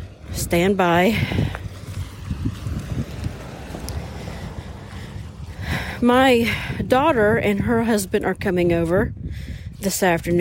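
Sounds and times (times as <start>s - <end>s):
car passing by: 0.0s - 7.9s
speech: 0.4s - 1.7s, 6.0s - 10.3s.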